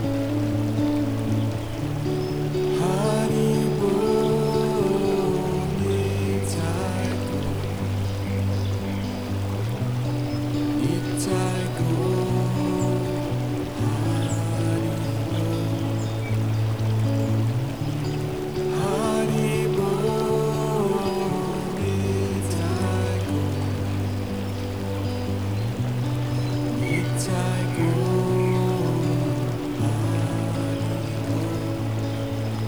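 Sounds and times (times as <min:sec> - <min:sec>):
gentle relaxing melody: 0:00.0 - 0:32.6.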